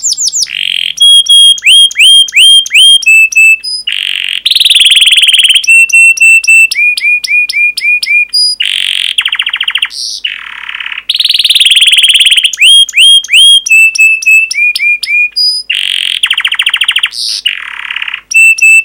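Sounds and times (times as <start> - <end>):
canary song: 0.0 - 18.8.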